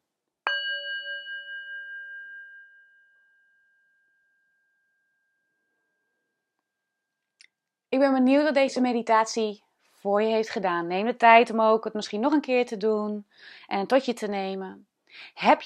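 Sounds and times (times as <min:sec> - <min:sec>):
singing bowl struck as end signal: 0:00.5 - 0:07.2
speech: 0:07.9 - 0:15.6.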